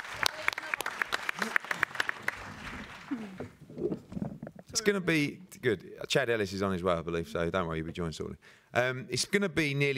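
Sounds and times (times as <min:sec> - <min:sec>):
light applause from a small group at a press conference: 0:00.0 - 0:03.4
speech: 0:04.8 - 0:09.9.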